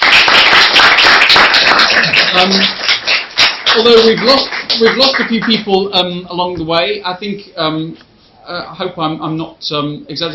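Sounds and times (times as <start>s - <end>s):
audience applause: 0.0s - 5.6s
speech: 2.4s - 2.8s, 3.8s - 10.3s.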